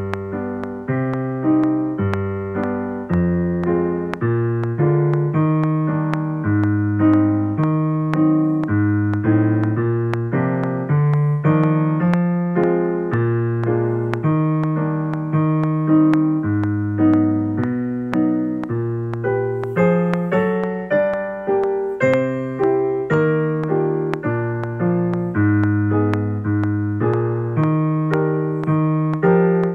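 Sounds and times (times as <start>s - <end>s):
musical accompaniment: 0.0s - 29.7s.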